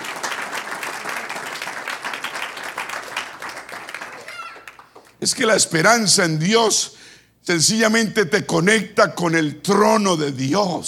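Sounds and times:
audience applause: 0.0 - 5.2
speech: 5.2 - 10.8.

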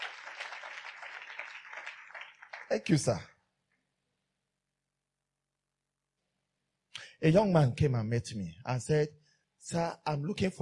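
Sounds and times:
audience clapping: 0.0 - 3.4
speech: 2.7 - 3.3, 7.2 - 10.5.

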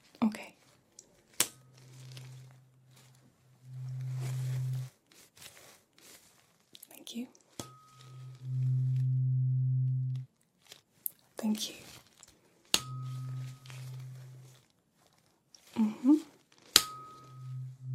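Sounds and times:
faint rustling: 0.0 - 17.9
low humming tone during hearing test: 1.6 - 4.9, 7.7 - 10.3, 12.8 - 14.6, 16.9 - 17.9
speech: 7.1 - 7.4, 11.4 - 11.9.

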